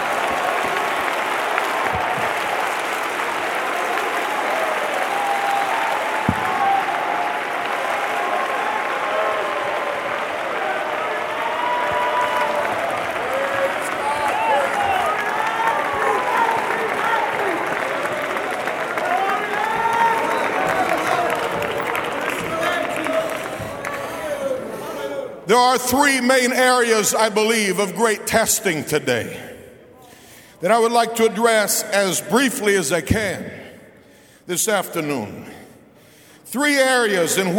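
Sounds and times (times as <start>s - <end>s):
audience clapping: 0.0s - 26.0s
speech: 25.8s - 29.5s, 30.6s - 33.6s, 34.5s - 35.6s, 36.5s - 37.5s.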